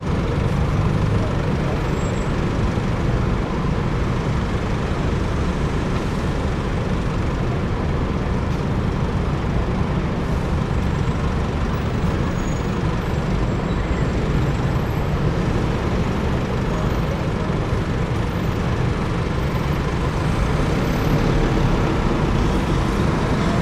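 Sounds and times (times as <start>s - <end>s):
traffic in London Parliament Square: 0.0s - 23.5s.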